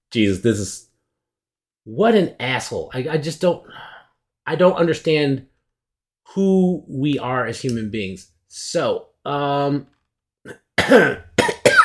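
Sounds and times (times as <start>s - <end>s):
speech: 0.1s - 0.9s, 1.8s - 3.9s, 4.5s - 5.5s, 6.3s - 11.3s
person coughing after choking: 10.5s - 11.8s
throat clearing: 10.5s - 11.8s.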